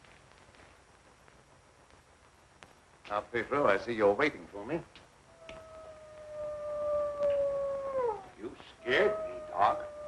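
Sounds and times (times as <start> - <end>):
speech: 3.1 - 5.0
wolf howling: 5.3 - 10.0.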